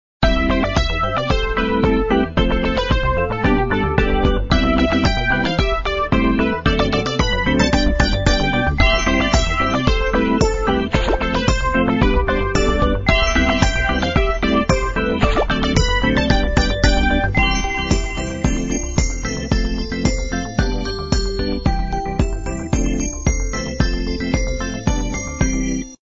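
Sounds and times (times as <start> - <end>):
winning music: 0.2 - 25.8.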